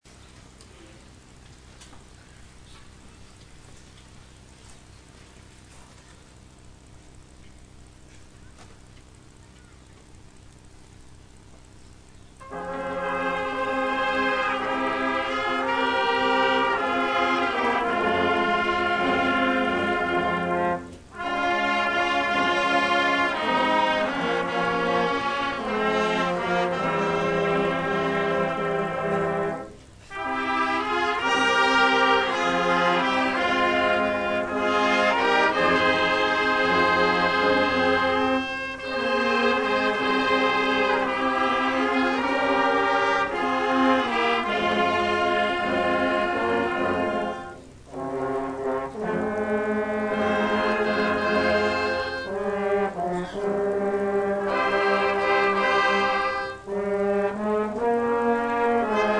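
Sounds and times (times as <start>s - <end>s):
orchestra: 12.4s - 59.1s.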